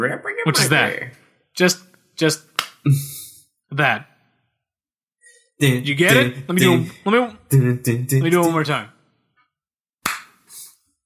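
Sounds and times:
speech: 0.0s - 3.1s, 3.7s - 4.1s, 5.6s - 8.9s
hand slaps on body: 2.6s - 2.8s, 10.0s - 10.4s.

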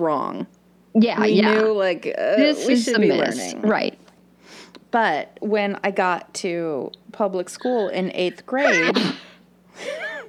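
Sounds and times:
speech: 0.0s - 9.2s
sneeze: 8.6s - 9.4s.

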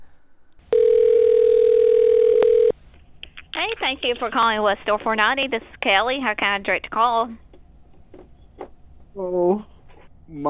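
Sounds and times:
telephone dial tone after a hang-up: 0.7s - 2.7s
speech: 4.0s - 7.4s, 9.2s - 9.7s, 10.3s - 10.4s.

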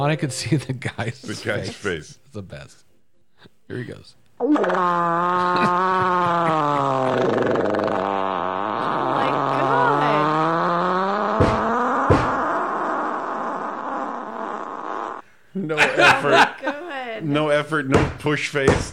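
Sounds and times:
speech: 0.0s - 8.0s, 15.6s - 18.9s
fart: 4.4s - 15.2s
laughter: 5.4s - 7.4s, 15.6s - 17.1s.

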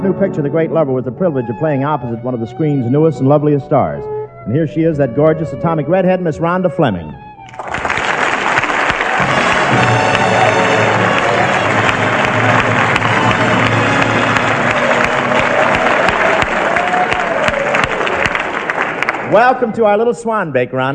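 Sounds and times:
speech: 0.0s - 7.8s, 19.3s - 20.9s
audience applause: 7.5s - 19.7s.

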